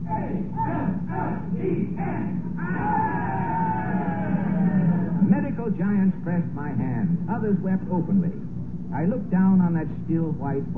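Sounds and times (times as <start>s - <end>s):
high drawn-out cry: 0.0s - 5.2s
gallery crowd cheering and shouting: 2.6s - 5.3s
speech: 5.8s - 10.7s.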